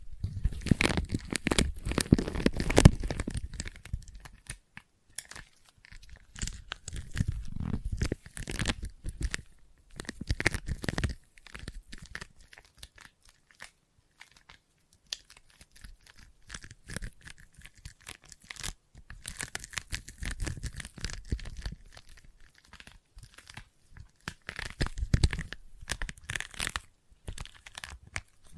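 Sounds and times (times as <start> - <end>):
sticky tapping and peeling: 0.0 - 28.5.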